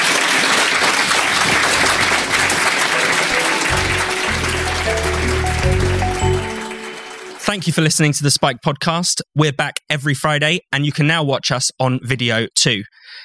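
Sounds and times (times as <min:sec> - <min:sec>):
crowd applauding: 0:00.0 - 0:07.8
speech: 0:07.5 - 0:13.2.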